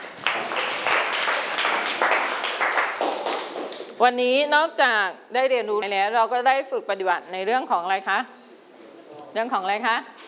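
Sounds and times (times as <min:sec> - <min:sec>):
classroom applause for a student: 0:00.0 - 0:03.9
speech: 0:04.0 - 0:08.4, 0:09.3 - 0:10.2.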